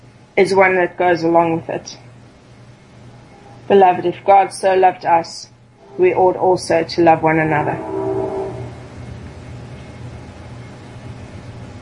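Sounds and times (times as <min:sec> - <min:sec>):
speech: 0:00.4 - 0:02.1, 0:03.7 - 0:08.0
train rolling past: 0:05.8 - 0:10.1.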